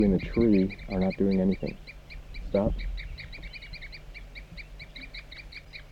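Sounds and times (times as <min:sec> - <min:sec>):
speech: 0:00.0 - 0:03.3
low rumbling hum: 0:00.0 - 0:05.9
wild birds giving toop calls: 0:00.0 - 0:05.9.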